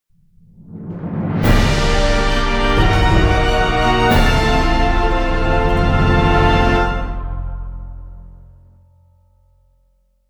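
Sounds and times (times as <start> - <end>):
victory jingle: 1.4 - 7.6.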